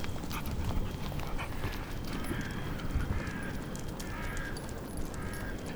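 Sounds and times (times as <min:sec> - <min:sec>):
group of crows cawing on a crane at a construction site in Vienna: 0:00.1 - 0:05.7.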